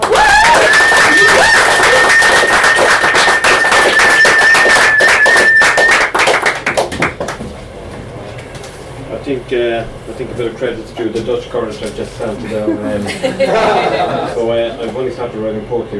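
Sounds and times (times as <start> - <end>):
audience applause: 0.0 - 7.4
speech: 9.5 - 15.9
laughter: 12.4 - 14.7.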